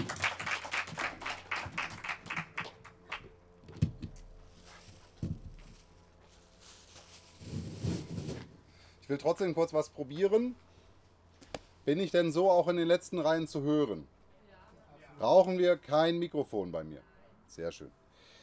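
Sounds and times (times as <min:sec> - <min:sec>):
audience applause: 0:00.0 - 0:03.3
speech: 0:09.1 - 0:10.7, 0:11.9 - 0:14.1, 0:15.2 - 0:18.0.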